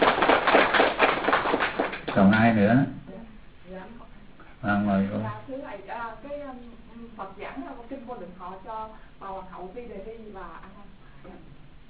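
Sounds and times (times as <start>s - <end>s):
audience applause: 0.0s - 2.2s
speech: 2.2s - 3.0s, 4.6s - 11.6s.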